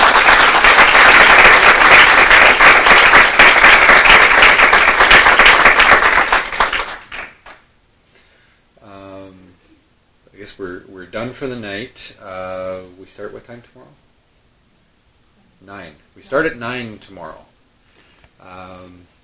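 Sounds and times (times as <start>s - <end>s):
crowd applauding: 0.0s - 7.6s
speech: 11.2s - 14.1s, 15.6s - 17.5s, 18.4s - 19.1s.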